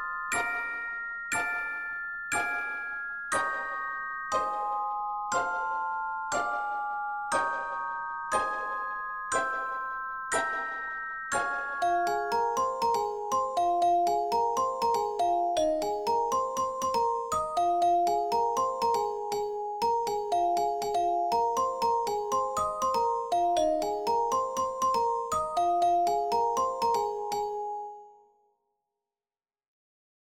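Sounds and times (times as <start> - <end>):
pizzicato bells: 0.0 - 28.1.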